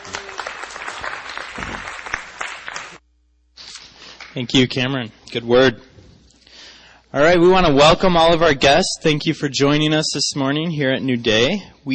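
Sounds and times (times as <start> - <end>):
church congregation applauding during a morning service: 0.0 - 3.0
speech: 4.4 - 5.9, 7.1 - 11.9.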